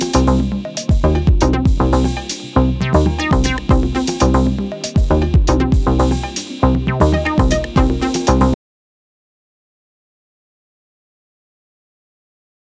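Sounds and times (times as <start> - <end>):
arpeggio: 0.0 - 8.6.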